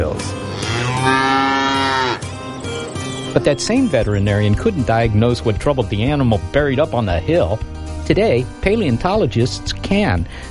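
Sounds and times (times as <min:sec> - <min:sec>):
sick cow with lactose intolerance mooing: 0:00.5 - 0:02.3
speech: 0:03.4 - 0:10.4.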